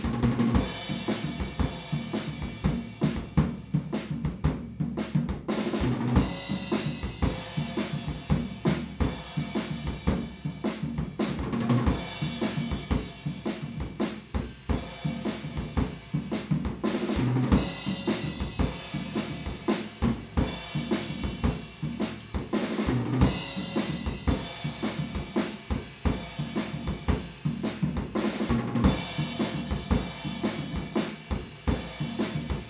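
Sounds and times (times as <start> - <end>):
drums recorded with omni PZM microphone: 0.0 - 32.6.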